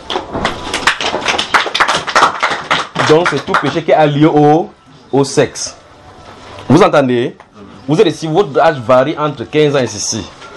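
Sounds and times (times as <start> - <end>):
audience applause: 0.7 - 3.8
speech: 3.1 - 5.8, 6.7 - 10.4.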